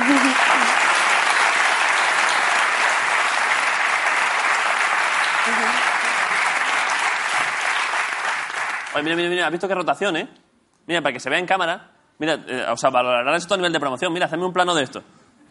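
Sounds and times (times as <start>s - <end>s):
audience applause: 0.0s - 9.2s
speech: 9.0s - 15.4s.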